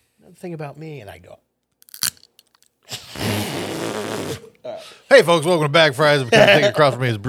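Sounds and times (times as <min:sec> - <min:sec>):
speech: 0:00.2 - 0:01.5, 0:04.0 - 0:07.2
person biting pens: 0:01.8 - 0:02.7.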